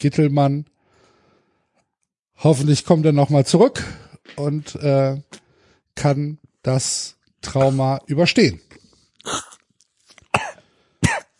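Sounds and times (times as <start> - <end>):
speech: 0.0 - 0.7, 2.4 - 5.4, 6.0 - 9.4
person coughing after swallowing the wrong way: 10.3 - 11.3.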